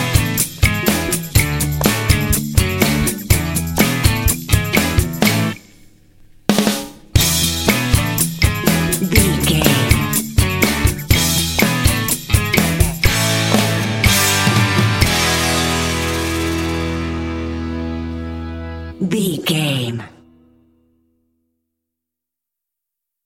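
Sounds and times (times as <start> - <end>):
indie pop music: 0.0 - 5.6, 7.2 - 20.0.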